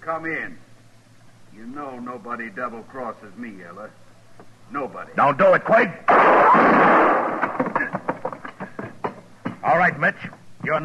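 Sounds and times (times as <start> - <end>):
speech: 0.0 - 0.7, 1.5 - 7.2, 9.6 - 10.8
gunshot in a radio western drama: 6.1 - 7.7.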